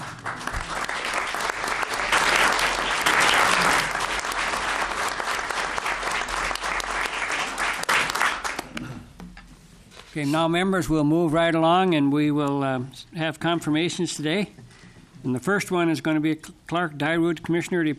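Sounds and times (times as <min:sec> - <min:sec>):
audience applause: 0:00.0 - 0:08.8
speech: 0:10.2 - 0:14.6, 0:15.2 - 0:17.9.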